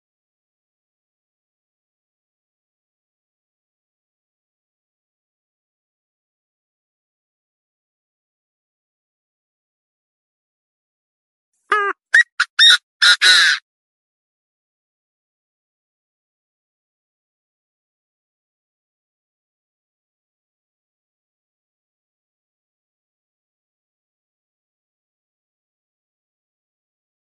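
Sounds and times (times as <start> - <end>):
partridge calling: 11.7 - 13.6.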